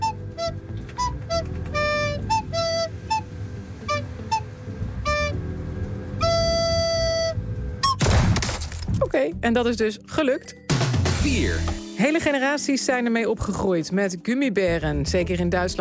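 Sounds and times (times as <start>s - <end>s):
breathy recorder notes controlling a shooting video game: 0.0s - 8.1s
speech: 9.2s - 10.6s, 11.2s - 15.7s.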